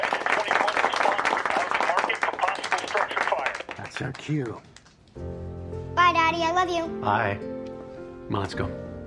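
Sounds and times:
small group applauding: 0:00.0 - 0:05.0
speech: 0:04.0 - 0:07.5, 0:08.3 - 0:08.9.

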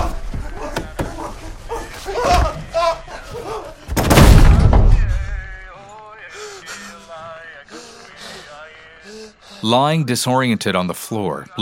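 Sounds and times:
laughter: 0:00.0 - 0:03.9
door slamming shut: 0:03.9 - 0:05.4
speech: 0:09.6 - 0:11.6.

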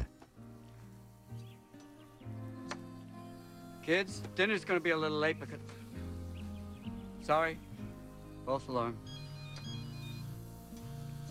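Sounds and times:
speech: 0:03.9 - 0:05.8, 0:07.2 - 0:07.7, 0:08.5 - 0:09.2
mobile phone vibrating: 0:09.0 - 0:11.2.

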